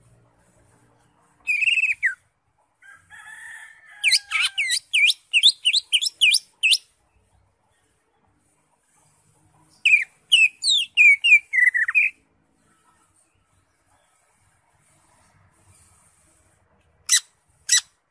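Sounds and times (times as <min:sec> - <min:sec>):
Greater Green Leafbird singing varied phrases: 0:01.4 - 0:02.2, 0:04.0 - 0:07.0, 0:09.7 - 0:12.2.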